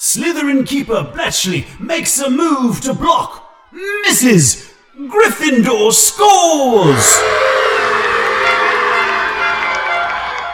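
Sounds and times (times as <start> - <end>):
speech: 0.1 - 7.6
stadium crowd cheering: 6.6 - 10.5.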